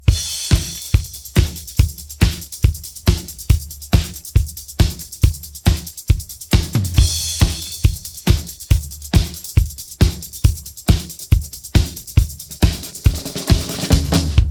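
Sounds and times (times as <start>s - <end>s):
drum pattern: 0.0s - 14.4s.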